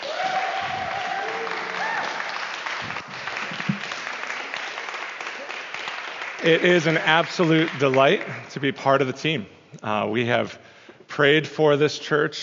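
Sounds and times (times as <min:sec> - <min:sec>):
faint voices and scattered whoops: 0:00.0 - 0:02.4
audience applause: 0:00.0 - 0:08.6
speech: 0:06.4 - 0:12.4.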